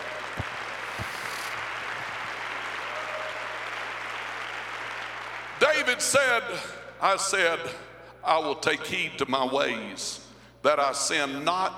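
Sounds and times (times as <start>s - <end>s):
audience clapping hands: 0.0s - 5.9s
speech: 5.9s - 11.7s.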